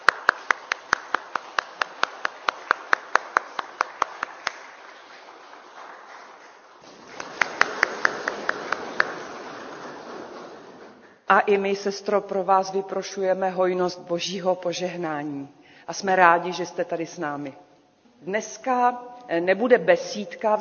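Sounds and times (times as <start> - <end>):
audience clapping: 0.0 - 11.2
speech: 11.3 - 17.6, 18.2 - 20.6.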